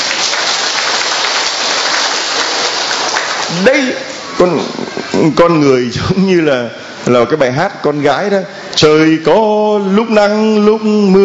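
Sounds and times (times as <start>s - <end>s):
audience applause: 0.0s - 4.8s
speech: 3.6s - 11.2s.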